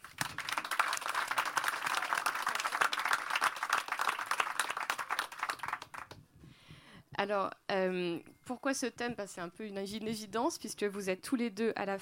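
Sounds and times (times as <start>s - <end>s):
audience applause: 0.0s - 6.2s
speech: 7.2s - 12.0s.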